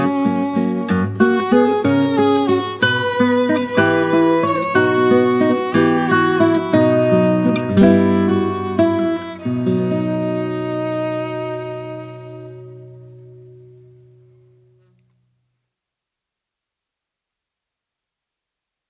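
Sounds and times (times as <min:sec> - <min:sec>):
waltz music: 0:00.1 - 0:12.8.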